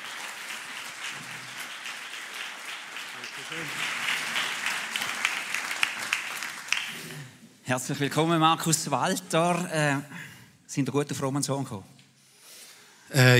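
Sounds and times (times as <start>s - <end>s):
welcoming applause: 0.0s - 7.4s
speech: 3.4s - 4.1s, 7.7s - 12.0s, 13.1s - 13.3s.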